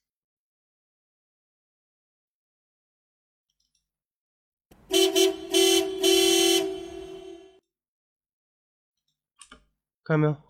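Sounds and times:
car horn honking: 4.8s - 7.6s
speech: 10.1s - 10.4s.

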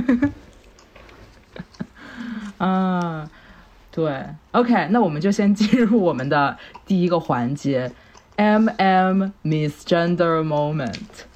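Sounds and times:
speech: 0.0s - 0.4s, 2.6s - 3.4s, 4.0s - 11.3s
person chewing lamb skewers: 0.4s - 2.6s.

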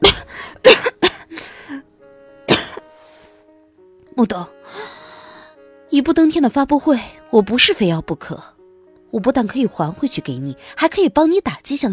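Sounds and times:
woman coughing from cigarette smoke: 0.0s - 1.4s, 2.5s - 2.8s
speech: 4.2s - 4.6s, 5.9s - 11.9s.

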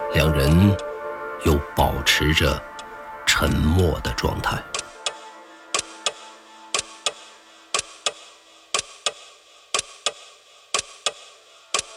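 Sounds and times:
speech: 0.1s - 0.9s, 1.4s - 2.7s, 3.4s - 4.7s
clock ticking: 3.8s - 11.9s.

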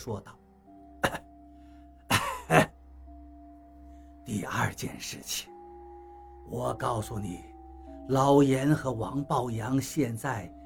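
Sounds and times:
speech: 0.0s - 0.4s, 4.3s - 5.5s, 6.5s - 10.6s
short raspy coughs: 1.0s - 1.3s, 2.1s - 2.7s.

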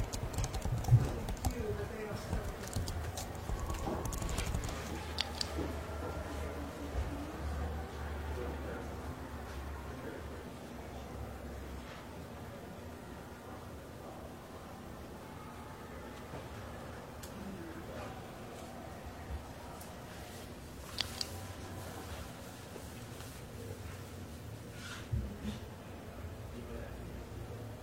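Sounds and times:
public library room murmur: 0.0s - 27.8s.

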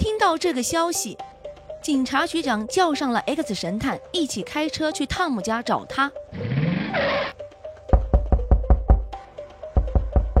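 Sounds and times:
speech: 0.2s - 7.3s
knocking on a door: 7.9s - 9.2s, 9.8s - 10.3s.

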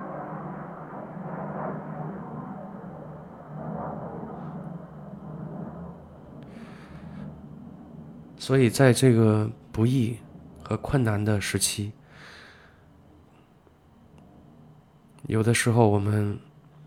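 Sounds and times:
airplane flying overhead: 0.0s - 16.8s
speech: 8.4s - 12.0s, 15.3s - 16.5s.

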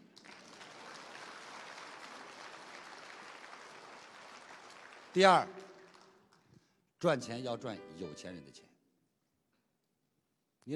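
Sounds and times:
audience applause: 0.0s - 6.4s
speech: 5.2s - 5.6s, 7.0s - 8.7s.

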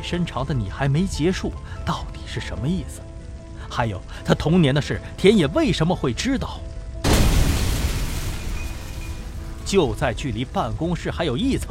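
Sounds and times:
speech: 0.0s - 3.1s, 3.7s - 6.7s, 9.7s - 11.6s
bomb explosion: 7.0s - 9.8s.

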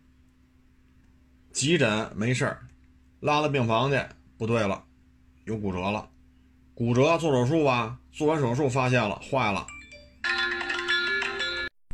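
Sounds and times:
speech: 1.5s - 4.9s, 5.5s - 6.1s, 6.8s - 9.8s
phone ringtone: 9.7s - 11.7s.

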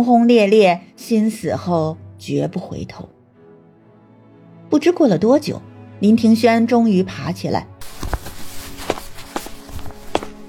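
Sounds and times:
speech: 0.0s - 3.2s, 4.7s - 8.1s
staggering footsteps: 7.8s - 10.4s.

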